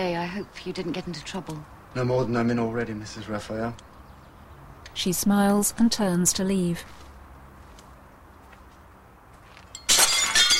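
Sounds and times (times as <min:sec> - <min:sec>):
speech: 0:00.0 - 0:03.9, 0:05.0 - 0:07.0
piece of glass thrown onto the ground shattering: 0:09.7 - 0:10.5.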